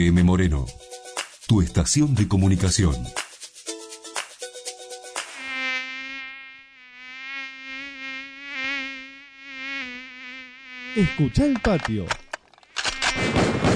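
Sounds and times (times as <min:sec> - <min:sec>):
speech: 0:00.0 - 0:03.3, 0:11.0 - 0:12.2
mosquito whining buzz: 0:03.8 - 0:13.4.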